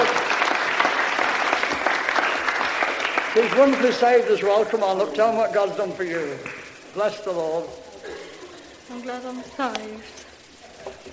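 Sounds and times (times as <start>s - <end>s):
audience clapping: 0.0s - 7.8s
speech: 3.4s - 7.8s, 8.9s - 10.2s.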